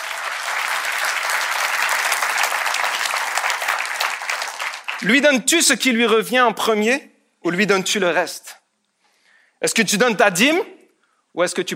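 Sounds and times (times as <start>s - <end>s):
audience applauding: 0.0s - 5.3s
speech: 5.0s - 8.6s, 9.6s - 10.8s, 11.4s - 11.7s.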